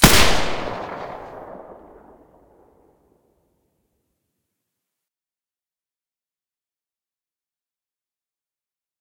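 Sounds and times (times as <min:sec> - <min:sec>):
G36 rifle with silencer shots: 0:00.0 - 0:02.6.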